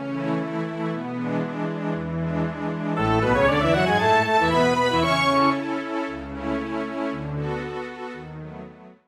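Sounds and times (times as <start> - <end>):
horn concerto with orchestral accompaniment: 0.0 - 8.8.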